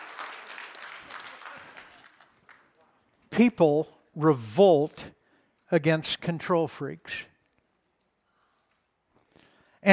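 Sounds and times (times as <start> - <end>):
audience applause: 0.0 - 2.7
speech: 3.4 - 7.3.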